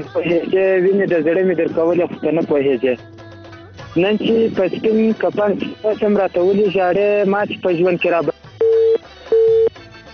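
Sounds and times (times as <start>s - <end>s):
speech: 0.0s - 3.2s, 4.0s - 8.3s
phone busy tone beeps after a phone call is cut off: 8.6s - 9.8s.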